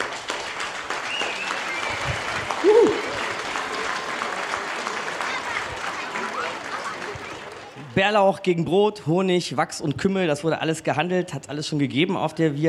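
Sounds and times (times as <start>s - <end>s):
audience applause: 0.0s - 8.0s
speech: 8.0s - 12.6s.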